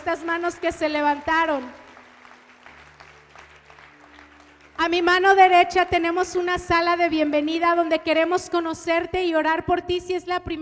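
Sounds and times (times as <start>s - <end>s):
speech: 0.0s - 1.8s, 4.8s - 10.6s
audience clapping: 0.0s - 5.4s.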